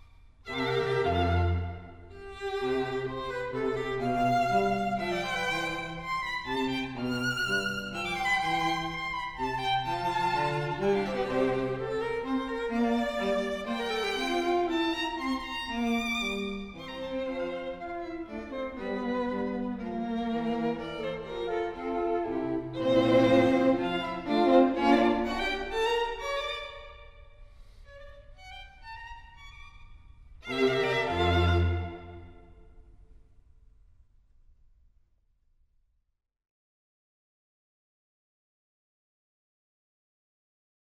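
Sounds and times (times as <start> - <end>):
string quartet playing a minuet in F: 0.5 - 27.0, 30.4 - 32.5.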